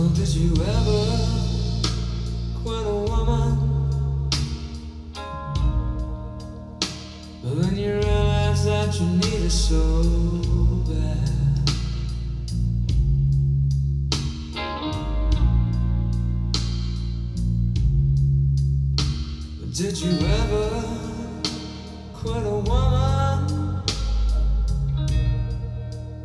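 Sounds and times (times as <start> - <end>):
blues piano: 0.0 - 18.3, 19.0 - 26.2.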